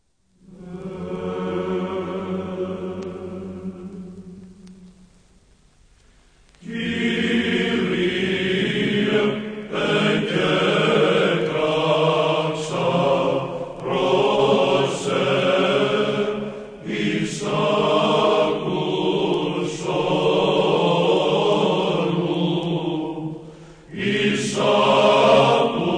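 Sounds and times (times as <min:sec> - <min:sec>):
chant in the grave tone: 0:00.4 - 0:05.1, 0:06.6 - 0:25.9.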